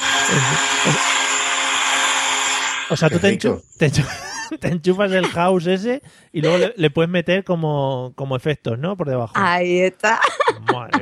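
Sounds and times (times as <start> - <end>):
vacuum cleaner running: 0.0 - 3.3
laughter: 0.3 - 1.0, 3.0 - 7.2, 9.4 - 11.0
speech: 0.3 - 1.2, 2.9 - 11.0.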